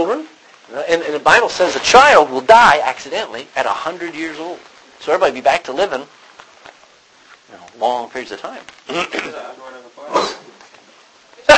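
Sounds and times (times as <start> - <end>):
speech: 0.0 - 6.2, 7.8 - 9.6
sneeze: 10.1 - 10.5.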